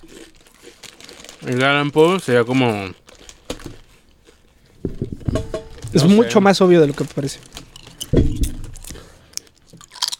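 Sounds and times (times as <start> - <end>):
speech: 1.4 - 3.0, 6.0 - 7.6
teeth snapping together: 7.6 - 10.1.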